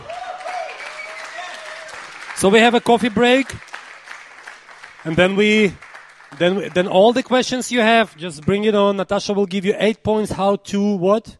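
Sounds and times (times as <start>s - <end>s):
audience applause: 0.0s - 8.8s
speech: 2.4s - 3.7s, 5.0s - 11.3s.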